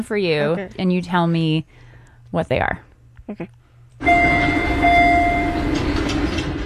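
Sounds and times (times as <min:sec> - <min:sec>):
speech: 0:00.0 - 0:05.0
subway train door chime: 0:04.0 - 0:06.6.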